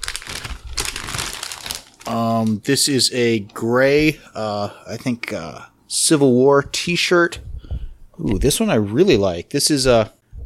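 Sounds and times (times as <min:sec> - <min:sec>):
foil pouch with a zip seal crinkling as it is handled: 0:00.0 - 0:02.6
speech: 0:02.1 - 0:07.5, 0:08.2 - 0:10.2.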